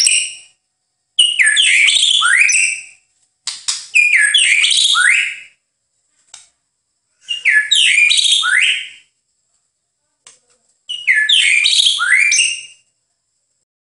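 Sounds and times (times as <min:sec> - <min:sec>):
white-eye song: 0:00.0 - 0:00.6, 0:01.2 - 0:03.1, 0:03.7 - 0:05.6, 0:07.2 - 0:09.1, 0:10.9 - 0:12.8.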